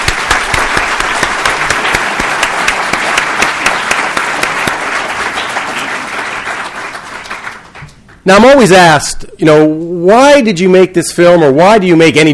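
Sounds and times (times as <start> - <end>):
round of applause: 0.0 - 8.2
speech: 8.2 - 12.3.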